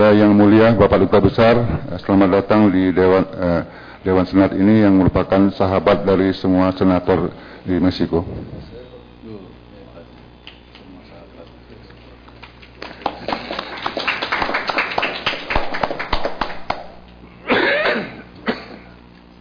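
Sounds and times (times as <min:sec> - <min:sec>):
speech: 0:00.0 - 0:08.8
audience applauding: 0:12.4 - 0:17.0.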